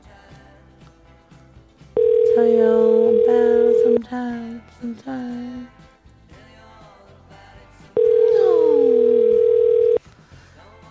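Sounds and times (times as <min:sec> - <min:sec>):
telephone line tone of call ringing unanswered: 0:02.0 - 0:04.0, 0:08.0 - 0:10.0
speech: 0:02.4 - 0:05.8.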